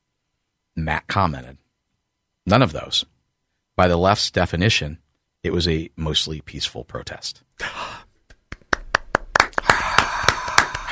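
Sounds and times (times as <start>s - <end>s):
speech: 0.8s - 1.6s, 2.4s - 3.1s, 3.8s - 8.0s
crowd applause sound effect: 9.3s - 10.9s.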